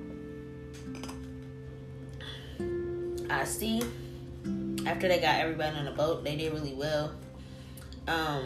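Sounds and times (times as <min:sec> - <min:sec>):
opening a plastic water bottle: 0:00.8 - 0:01.5
speech: 0:03.4 - 0:04.0, 0:04.8 - 0:07.2, 0:08.1 - 0:08.4.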